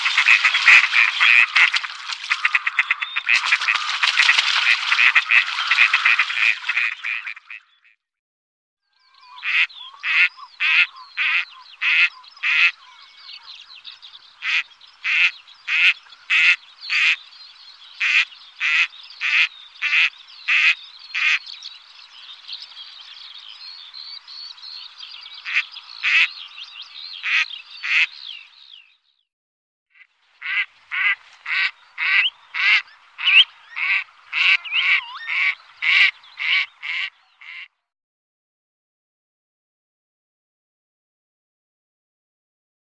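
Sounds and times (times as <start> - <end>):
gadwall duck calling: 0.0 - 7.7, 9.3 - 13.0, 14.4 - 17.2, 18.0 - 21.4, 25.4 - 26.3, 27.2 - 28.2, 30.0 - 37.7.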